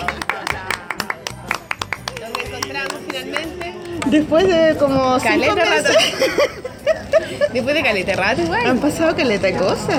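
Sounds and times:
rhythmic hand clapping: 0:00.0 - 0:04.4
speech: 0:04.1 - 0:06.7, 0:07.3 - 0:09.9
laughter: 0:05.7 - 0:07.7.

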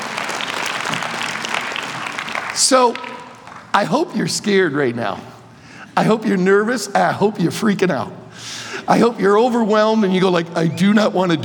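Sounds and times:
audience clapping: 0:00.0 - 0:04.1
speech: 0:02.6 - 0:05.4, 0:06.0 - 0:11.4.

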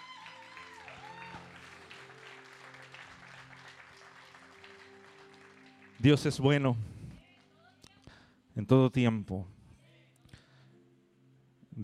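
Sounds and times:
audience applause: 0:00.0 - 0:06.7
speech: 0:06.0 - 0:07.0, 0:08.6 - 0:09.6.

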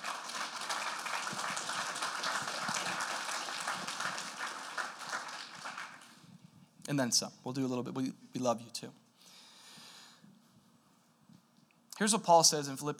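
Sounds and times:
audience clapping: 0:00.0 - 0:06.2
speech: 0:06.9 - 0:09.0, 0:12.0 - 0:12.9.

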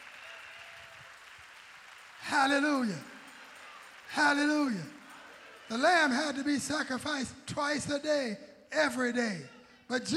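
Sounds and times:
audience clapping hands: 0:00.0 - 0:06.5
speech: 0:02.3 - 0:03.1, 0:04.2 - 0:05.0, 0:05.7 - 0:10.1.

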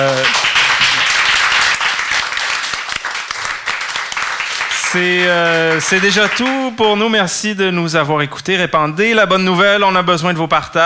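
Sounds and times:
audience applause: 0:00.0 - 0:06.7
speech: 0:04.9 - 0:10.8.

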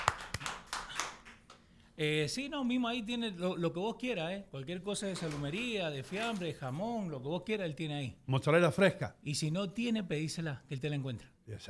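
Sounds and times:
scattered hand claps: 0:00.0 - 0:01.6
speech: 0:02.0 - 0:11.6.

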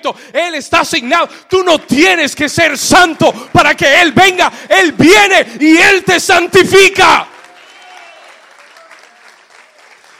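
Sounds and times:
speech: 0:00.0 - 0:07.3
audience applauding: 0:07.0 - 0:10.1.

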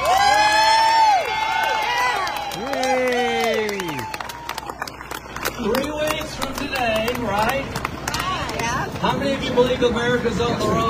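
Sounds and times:
crowd cheering and whooping: 0:00.0 - 0:05.8
clapping: 0:01.1 - 0:08.7
speech: 0:09.6 - 0:10.8.

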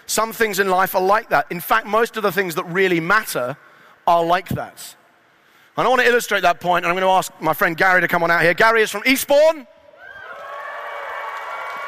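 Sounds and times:
speech: 0:00.2 - 0:05.0, 0:05.8 - 0:09.7
audience clapping: 0:10.2 - 0:11.8.

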